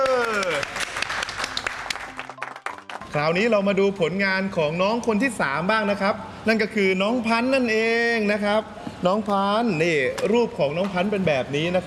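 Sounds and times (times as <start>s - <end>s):
audience applause after a children's fighting performance: 0.0s - 3.1s
speech: 3.1s - 11.8s.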